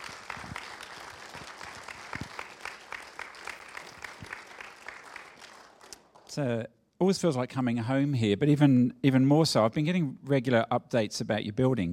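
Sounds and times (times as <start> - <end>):
audience applause greeting a guest speaker: 0.0 - 6.4
speech: 6.4 - 11.9.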